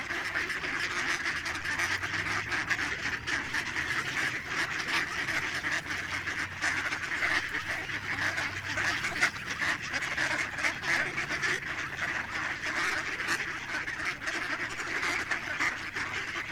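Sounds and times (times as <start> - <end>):
ducks quacking in a dense chorus: 0.0 - 16.5.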